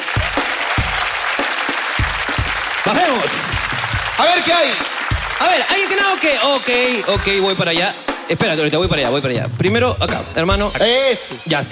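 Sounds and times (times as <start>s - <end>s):
crowd applauding: 0.0s - 7.9s
speech: 2.9s - 11.7s.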